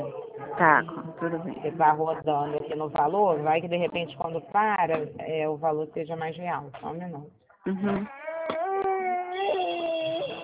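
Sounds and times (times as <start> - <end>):
speech: 0.6 - 8.2
five-month-old infant crying: 7.8 - 10.4.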